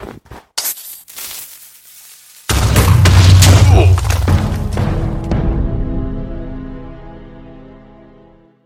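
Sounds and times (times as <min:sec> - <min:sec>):
creeper explosion: 0:02.5 - 0:04.7.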